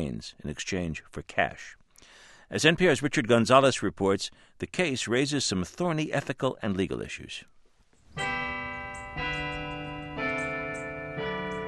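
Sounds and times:
speech: 0.0s - 1.8s, 2.5s - 7.5s
Holy Cross Catholic Church bells ringing: 8.2s - 11.6s.

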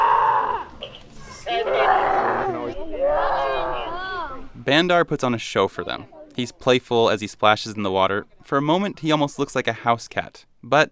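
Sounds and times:
children imitating tiger roars: 0.0s - 4.6s
speech: 4.7s - 10.9s.

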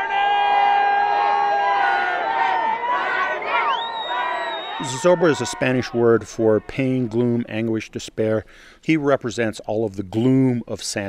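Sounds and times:
crowd of thousands screaming: 0.0s - 7.3s
speech: 4.8s - 11.0s.

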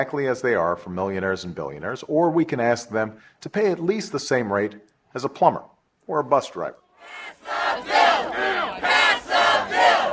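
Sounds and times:
speech: 0.0s - 7.9s
demonstrators chanting outside: 7.0s - 10.1s.

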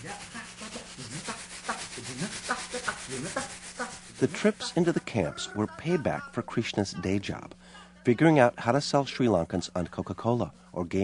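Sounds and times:
speech: 0.0s - 0.4s, 4.2s - 11.0s
plastic bag rubbed as rhythm instrument: 0.0s - 7.2s.

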